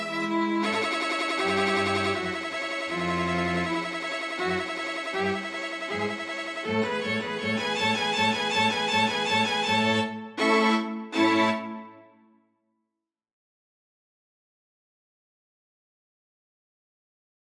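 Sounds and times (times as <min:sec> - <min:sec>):
string quartet playing a carnival finale: 0:00.0 - 0:12.1.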